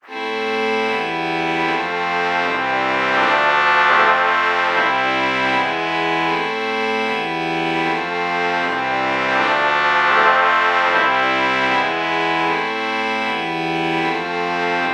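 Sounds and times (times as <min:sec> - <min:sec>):
trumpet violin chord morph: 0:00.0 - 0:14.9.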